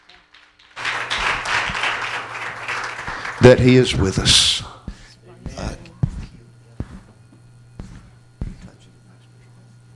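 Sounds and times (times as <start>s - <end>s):
congregation clapping hands in praise during a church service: 0.0s - 4.9s
speech: 3.4s - 4.8s.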